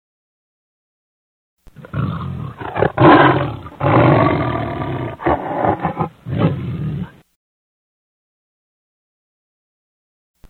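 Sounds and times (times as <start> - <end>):
lion roaring: 1.7 - 7.2.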